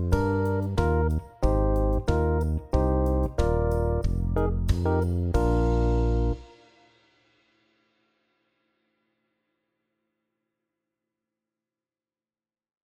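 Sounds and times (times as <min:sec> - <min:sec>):
Rhodes electric piano play-along: 0:00.0 - 0:06.6.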